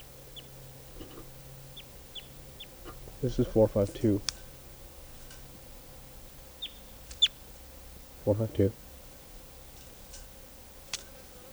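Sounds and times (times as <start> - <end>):
wild birds calling: 0.0 - 11.5
speech: 3.2 - 4.4, 8.2 - 8.8.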